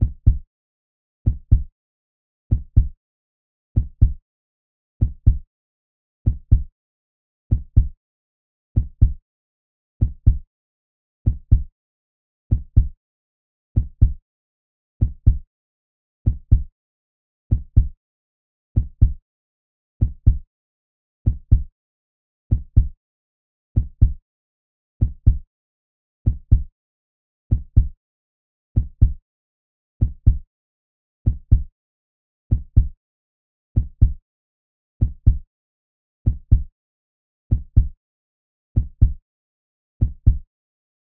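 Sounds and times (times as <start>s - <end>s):
heartbeat: 0.0s - 0.4s, 1.3s - 1.7s, 2.5s - 3.0s, 3.8s - 4.2s, 5.0s - 5.4s, 6.3s - 6.7s, 7.5s - 7.9s, 8.8s - 9.2s, 10.0s - 10.4s, 11.3s - 11.7s, 12.5s - 12.9s, 13.8s - 14.2s, 15.0s - 15.4s, 16.3s - 16.7s, 17.5s - 17.9s, 18.8s - 19.2s, 20.0s - 20.4s, 21.3s - 21.7s, 22.5s - 22.9s, 23.8s - 24.2s, 25.0s - 25.4s, 26.3s - 26.7s, 27.5s - 27.9s, 28.8s - 29.2s, 30.0s - 30.5s, 31.3s - 31.7s, 32.5s - 32.9s, 33.8s - 34.2s, 35.0s - 35.4s, 36.3s - 36.7s, 37.5s - 37.9s, 38.8s - 39.2s, 40.0s - 40.5s.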